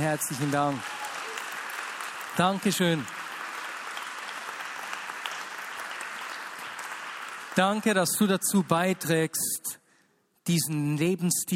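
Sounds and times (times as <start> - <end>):
speech: 0.0 - 1.0, 2.4 - 3.2, 7.6 - 9.8, 10.4 - 11.5
audience applause: 0.0 - 8.4.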